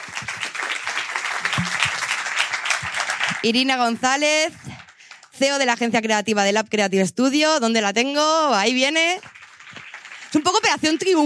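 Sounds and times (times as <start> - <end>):
audience applause: 0.0 - 5.6, 8.7 - 11.2
speech: 3.4 - 4.7, 5.4 - 9.4, 10.3 - 11.2.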